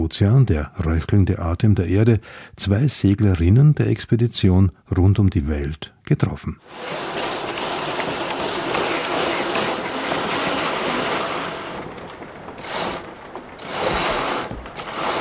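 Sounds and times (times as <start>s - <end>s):
speech: 0.1s - 7.2s
ratcheting winch while setting sails: 6.7s - 15.1s.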